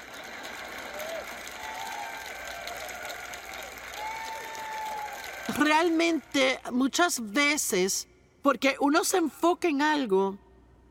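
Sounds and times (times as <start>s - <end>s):
group applauding: 0.0s - 6.6s
speech: 5.6s - 10.4s.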